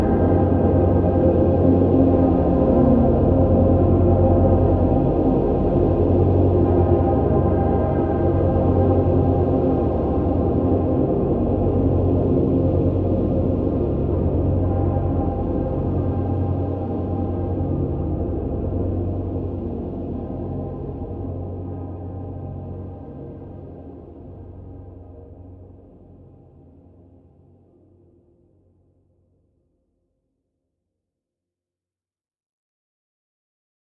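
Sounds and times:
drone: 0:00.0 - 0:27.0.

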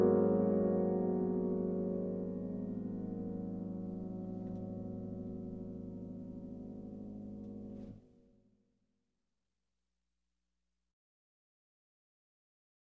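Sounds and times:
solo piano: 0:00.0 - 0:08.2.

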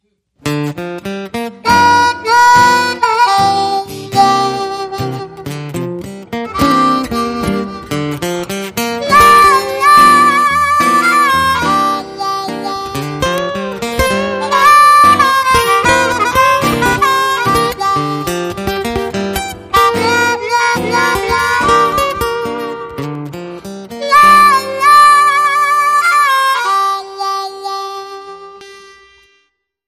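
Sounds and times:
slow blues: 0:00.4 - 0:29.2.

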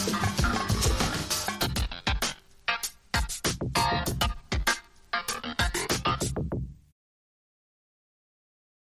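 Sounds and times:
turntable: 0:00.0 - 0:06.8.

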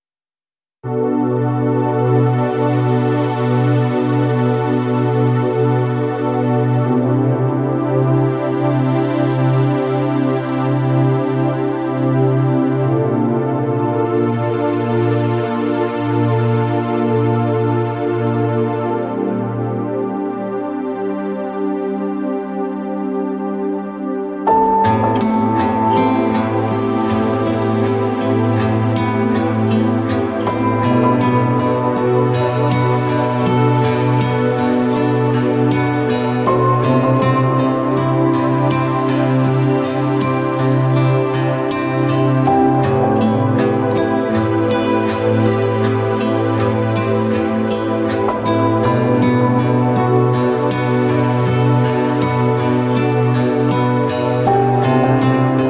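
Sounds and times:
underscore music: 0:00.9 - 0:55.6.

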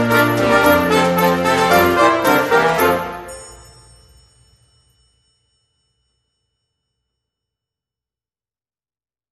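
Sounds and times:
brassy Christmas music without flute: 0:00.0 - 0:04.2.

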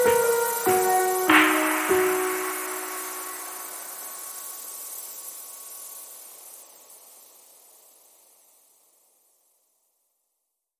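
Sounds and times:
clean instrumental music: 0:00.0 - 0:04.2.

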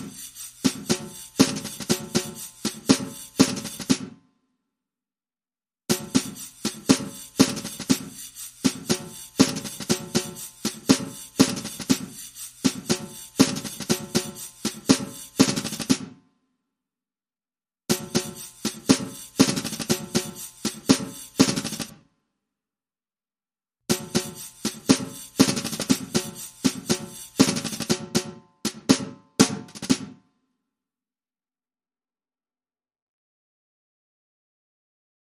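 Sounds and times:
drums: 0:00.0 - 0:04.2, 0:05.9 - 0:16.2, 0:17.9 - 0:22.0, 0:23.9 - 0:30.3.

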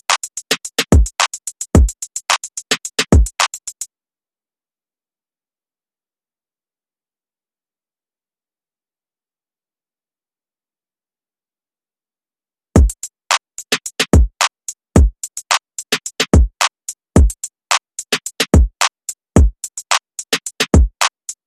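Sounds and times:
drums: 0:00.0 - 0:03.9, 0:12.8 - 0:21.4.

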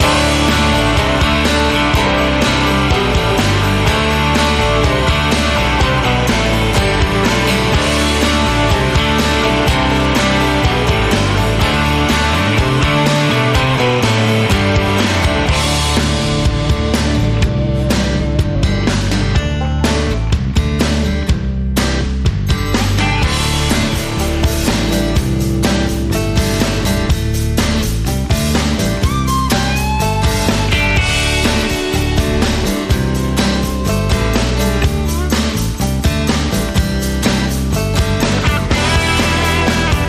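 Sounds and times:
banjo: 0:00.0 - 0:40.0.

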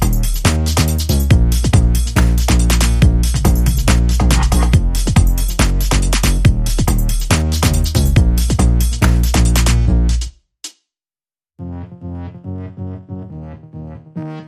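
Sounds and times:
drums and bass: 0:00.0 - 0:10.3.

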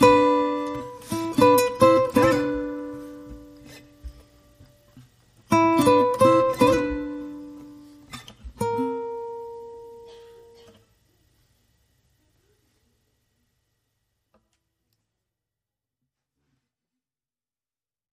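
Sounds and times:
lead guitar: 0:00.0 - 0:10.8.

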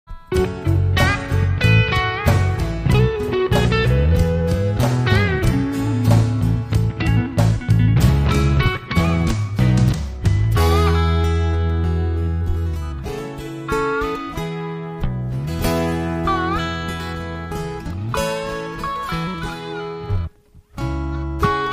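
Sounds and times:
guitar: 0:00.1 - 0:21.7.

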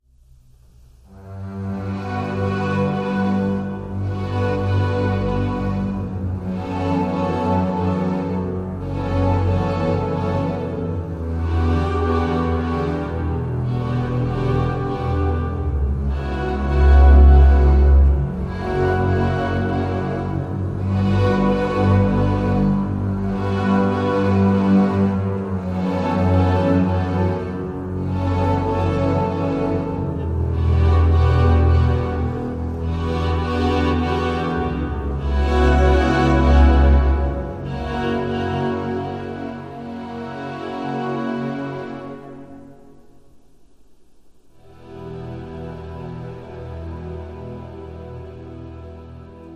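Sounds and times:
string instruments: 0:00.0 - 0:49.5.

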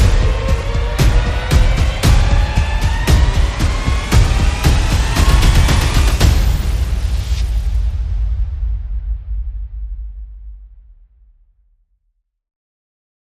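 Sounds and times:
sound effects: 0:00.0 - 0:09.0
percussion: 0:00.0 - 0:11.2.

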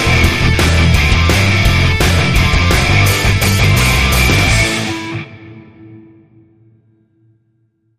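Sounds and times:
musical riff: 0:00.0 - 0:06.1.

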